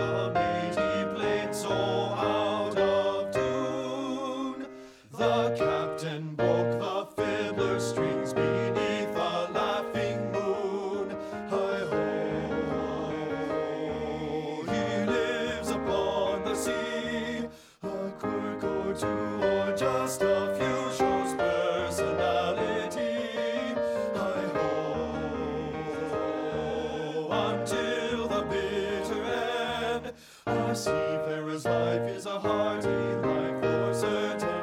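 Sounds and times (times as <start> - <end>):
men singing bass part of a sea song: 0.0 - 34.6.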